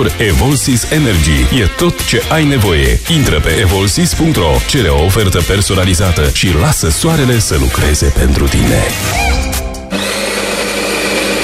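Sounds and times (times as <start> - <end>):
speech: 0.0 - 9.4
coffee grinder grinding freshly roasted coffee beans: 9.9 - 11.4.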